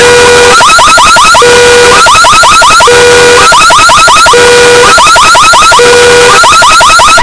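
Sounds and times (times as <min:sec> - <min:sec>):
very loud annoying car alarm: 0:00.0 - 0:07.2.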